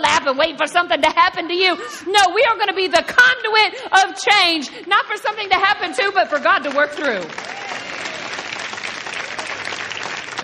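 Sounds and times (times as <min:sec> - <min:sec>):
speech: 0:00.2 - 0:07.8
audience applause: 0:06.1 - 0:10.4.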